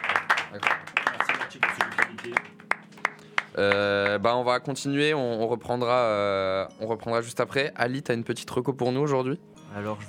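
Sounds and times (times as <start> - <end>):
hand clapping: 0.0 - 4.2
speech: 0.5 - 0.8, 1.6 - 2.6, 3.6 - 10.0.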